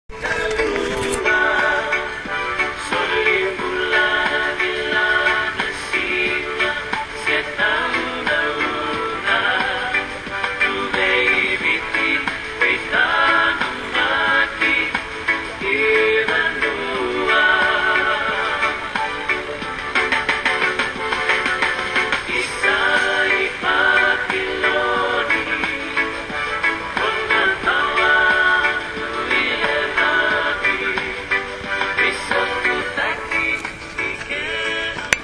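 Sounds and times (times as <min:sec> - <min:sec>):
Fijian music: 0:00.0 - 0:35.2.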